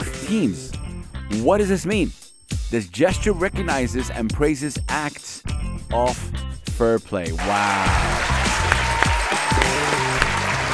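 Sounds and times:
speech: 0.3s - 8.2s
stadium fans cheering: 7.4s - 10.7s.

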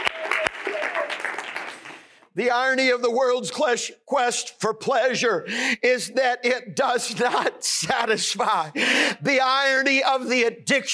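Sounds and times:
audience clapping: 0.0s - 2.3s
speech: 2.4s - 10.9s.

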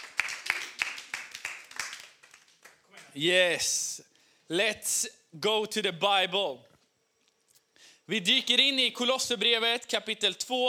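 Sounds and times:
audience applause: 0.0s - 3.1s
speech: 3.2s - 6.7s, 8.1s - 10.6s.

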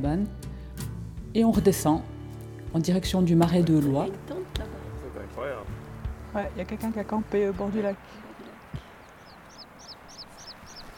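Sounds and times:
speech: 0.0s - 0.5s, 1.3s - 2.1s, 2.7s - 4.7s, 6.3s - 8.8s
constant windy hiss: 4.1s - 10.9s
alpine choughs calling in high rising chirps: 5.3s - 10.9s.

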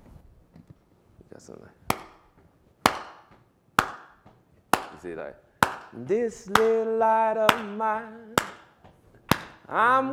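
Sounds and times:
speech: 1.4s - 2.1s, 5.0s - 8.4s, 9.7s - 10.1s
hand claps: 1.9s - 6.9s, 7.5s - 7.8s, 8.4s - 9.7s.

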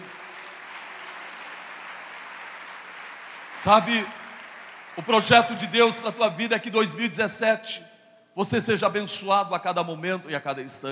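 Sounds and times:
audience clapping: 0.0s - 6.0s
speech: 3.5s - 4.2s, 5.0s - 10.8s.

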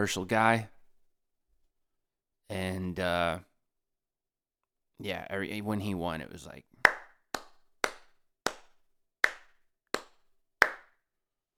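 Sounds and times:
speech: 0.0s - 0.7s, 2.5s - 3.5s, 5.0s - 6.8s
slow hand claps greeting the Masters golf tournament winner: 6.8s - 11.0s.

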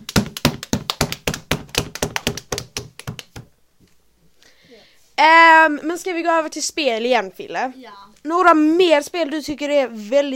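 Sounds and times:
hands clapping: 0.0s - 3.5s
speech: 5.2s - 10.3s.

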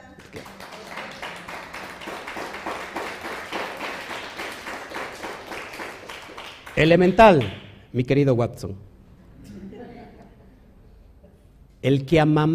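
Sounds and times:
crowd applause: 0.0s - 7.5s
speech: 6.8s - 8.9s, 11.8s - 12.5s
laughter: 9.4s - 11.4s.

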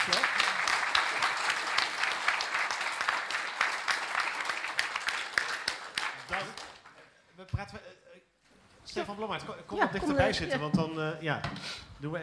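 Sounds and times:
audience applause: 0.0s - 7.1s
speech: 9.0s - 12.2s.

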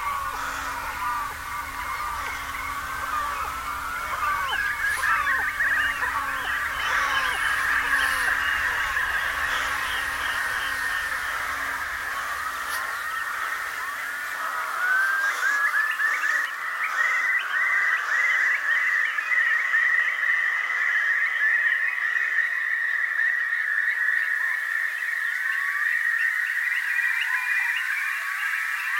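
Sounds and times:
low steady hum with a faint drone: 0.0s - 14.0s
meadow chorus of croaking and chirping: 0.0s - 28.9s.

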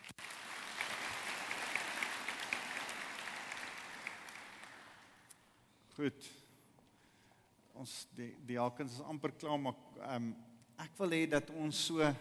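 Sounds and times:
audience hand clapping: 0.0s - 5.4s
speech: 6.0s - 6.4s, 7.8s - 12.1s.

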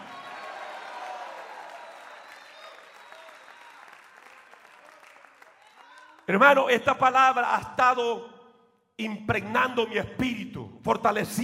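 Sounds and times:
crowd clapping: 0.0s - 6.5s
speech: 6.3s - 8.3s, 9.0s - 11.4s.

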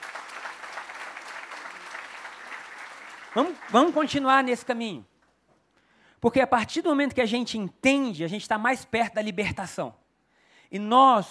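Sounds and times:
audience applause: 0.0s - 4.6s
speech: 3.4s - 5.1s, 6.2s - 10.0s, 10.7s - 11.3s.

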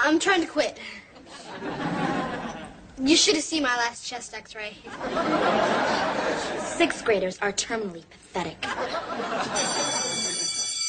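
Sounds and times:
speech: 0.1s - 2.0s, 3.0s - 9.8s
laughter: 1.2s - 2.8s, 4.9s - 6.8s, 8.6s - 10.8s
school bell ringing: 9.4s - 10.8s.

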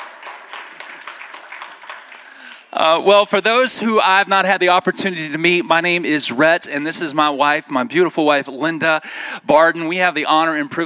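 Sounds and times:
church congregation clapping in a Civic Center hall: 0.0s - 3.0s
speech: 2.7s - 10.8s.

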